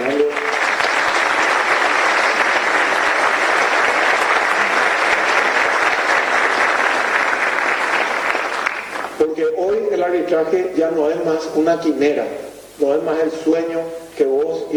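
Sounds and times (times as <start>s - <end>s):
loud applause: 0.0s - 9.3s
speech: 10.3s - 14.7s.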